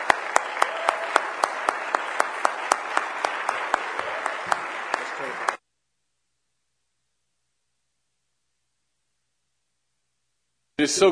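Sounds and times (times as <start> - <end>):
church congregation at a National Youth Day service applauding: 0.0 - 5.6.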